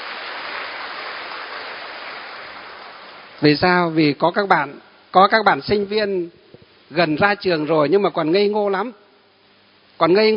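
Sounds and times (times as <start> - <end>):
audience applause: 0.0 - 3.4
speech: 3.4 - 9.0, 10.0 - 10.3.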